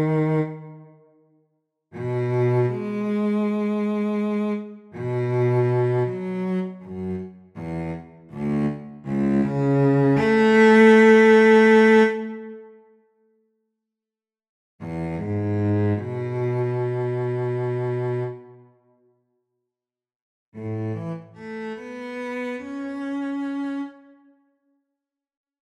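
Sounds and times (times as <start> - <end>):
cello recitative: 0.0 - 0.7, 2.0 - 12.6, 14.8 - 18.6, 20.6 - 24.0.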